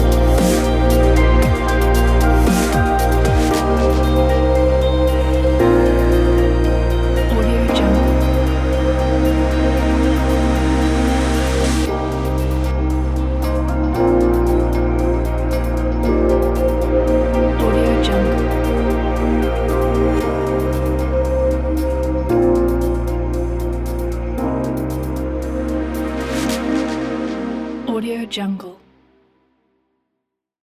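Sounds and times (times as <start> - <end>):
atmospheric electronic chill music: 0.0 - 28.8.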